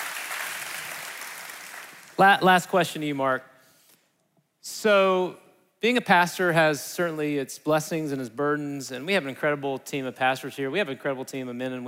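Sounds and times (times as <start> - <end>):
audience clapping: 0.0 - 2.2
speech: 2.2 - 3.5, 4.8 - 11.8.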